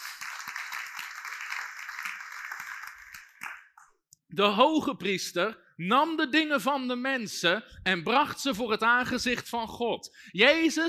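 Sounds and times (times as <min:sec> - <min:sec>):
audience applause: 0:00.0 - 0:03.7
speech: 0:04.3 - 0:10.8.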